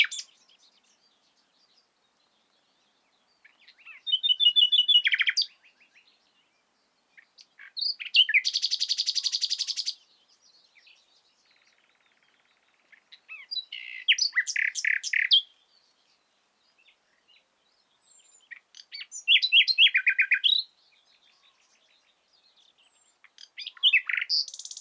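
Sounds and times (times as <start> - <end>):
common nightingale song: 0.0 - 24.7.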